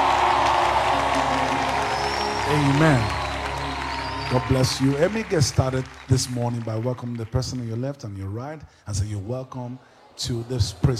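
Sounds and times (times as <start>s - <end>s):
sustained musical tone: 0.0s - 6.4s
church congregation clapping at a praise service: 0.0s - 8.0s
speech: 2.5s - 3.2s, 4.3s - 10.9s.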